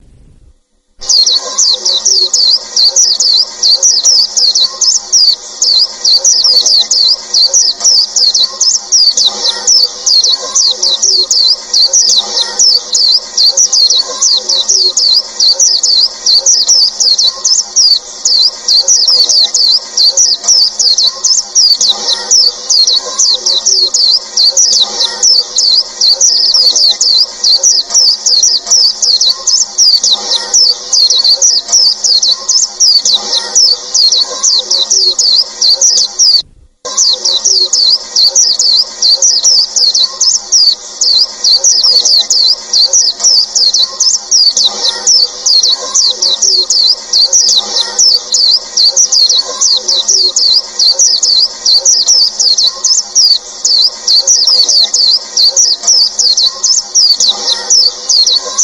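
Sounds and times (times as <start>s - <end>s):
white-eye bird calls: 1.0s - 58.6s.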